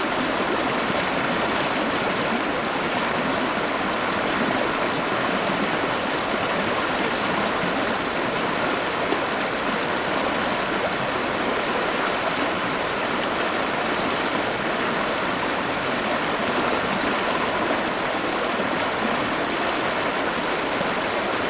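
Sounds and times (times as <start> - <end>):
medium river: 0.0 - 21.4.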